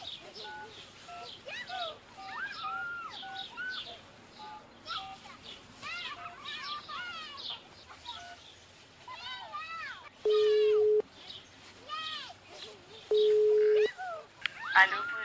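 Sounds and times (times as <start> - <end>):
voices talking: 0.0 - 15.2
telephone tones while dialing a call: 10.2 - 11.0, 13.1 - 13.9.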